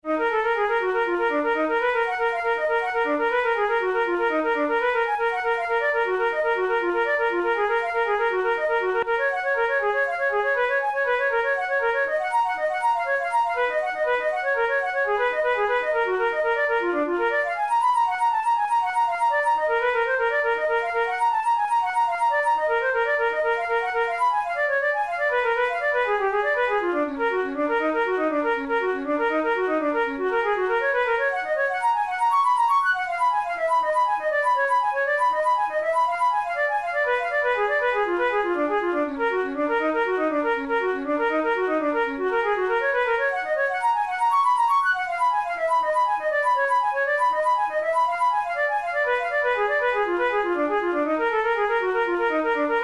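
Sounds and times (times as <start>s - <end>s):
flute playing caprice etudes: 0.0s - 52.8s.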